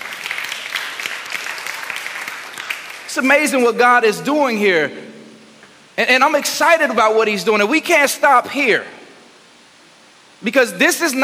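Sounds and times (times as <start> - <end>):
audience clapping: 0.0 - 3.2
speech: 3.1 - 5.1, 6.0 - 9.0, 10.4 - 11.2.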